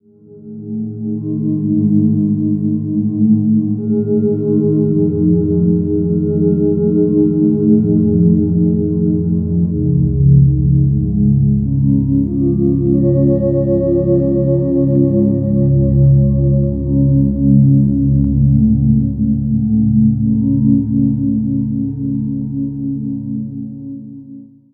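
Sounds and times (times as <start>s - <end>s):
ambient cloud keyboards: 0.2s - 24.3s.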